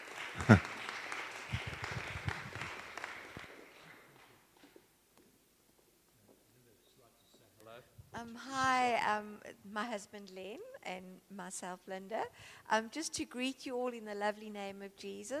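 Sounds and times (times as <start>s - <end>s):
audience applause welcoming guests at a Christian weekend gathering: 0.0s - 4.4s
speech: 0.4s - 0.7s, 10.0s - 15.3s.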